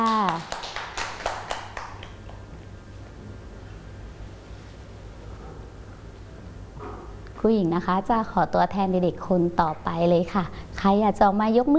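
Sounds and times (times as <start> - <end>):
children clapping hands: 0.0 - 2.5
faint low hum: 0.0 - 11.7
speech: 7.4 - 11.7.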